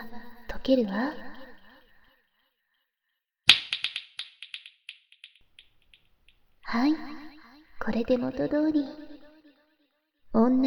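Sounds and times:
speech: 0.6 - 1.3, 6.7 - 7.2, 7.9 - 9.0, 10.3 - 10.6
finger snap with repeats: 3.5 - 5.4.

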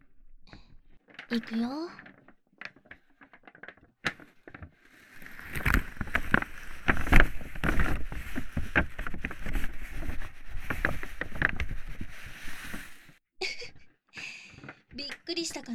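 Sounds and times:
speech: 1.3 - 2.0, 15.5 - 15.7
paper bag crinkling and rustling: 3.5 - 13.2.

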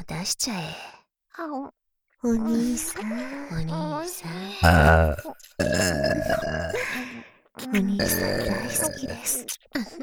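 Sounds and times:
speech: 0.2 - 10.0
long drawn-out voiced burp: 4.6 - 7.0, 8.0 - 9.3.

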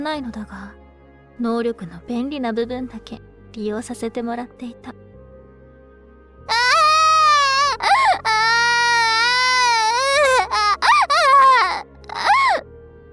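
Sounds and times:
speech: 0.0 - 0.8, 1.4 - 5.0
baby crying: 6.5 - 12.7.

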